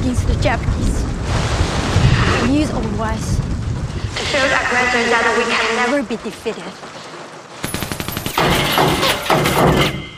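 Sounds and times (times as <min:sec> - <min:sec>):
speech: 0:00.1 - 0:01.4, 0:02.3 - 0:03.4, 0:04.2 - 0:07.0
rapid gunfire in a wartime drama scene: 0:07.6 - 0:09.9.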